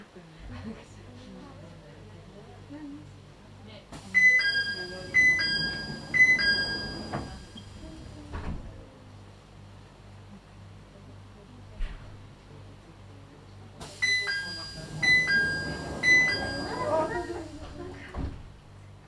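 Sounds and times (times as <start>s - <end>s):
ringing chime tones: 4.2s - 7.6s, 14.1s - 17.3s
mountain railway train running: 4.2s - 8.9s, 13.8s - 18.6s.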